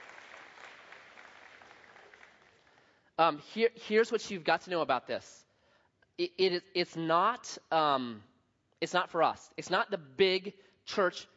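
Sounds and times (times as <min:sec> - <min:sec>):
audience clapping: 0:00.0 - 0:03.0
speech: 0:03.2 - 0:05.4, 0:06.2 - 0:11.3.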